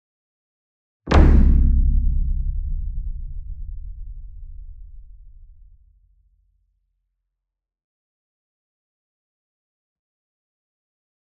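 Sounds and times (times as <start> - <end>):
gong drum flam with soft beater: 1.1 - 5.0.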